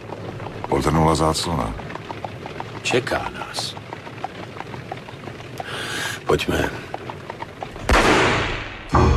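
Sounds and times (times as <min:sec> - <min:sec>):
speech: 0:00.8 - 0:01.9, 0:02.9 - 0:03.8, 0:06.3 - 0:06.8
gunshots of a man shooting himself: 0:07.8 - 0:09.0.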